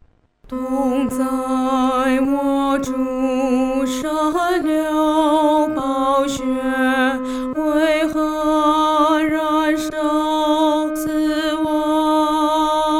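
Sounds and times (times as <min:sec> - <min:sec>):
solo singing, second voice: 0:00.5 - 0:12.9.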